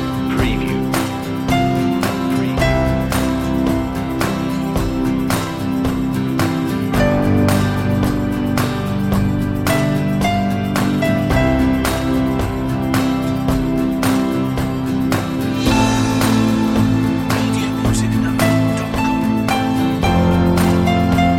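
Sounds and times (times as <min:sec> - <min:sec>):
piano lead: 0:00.0 - 0:21.3.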